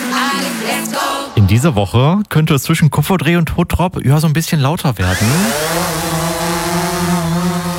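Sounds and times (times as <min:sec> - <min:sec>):
speech: 0:00.8 - 0:06.1
drones flying back and forth: 0:05.0 - 0:07.7.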